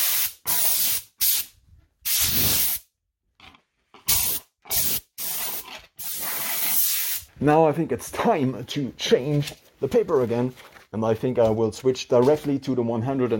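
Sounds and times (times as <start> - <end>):
compressed air blowing dust off: 0.0 - 2.8, 4.1 - 7.3
speech: 7.4 - 13.3.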